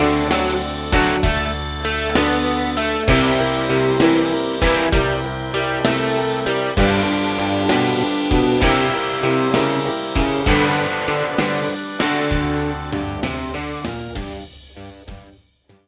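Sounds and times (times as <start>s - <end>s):
blues bass backing track: 0.0s - 15.3s.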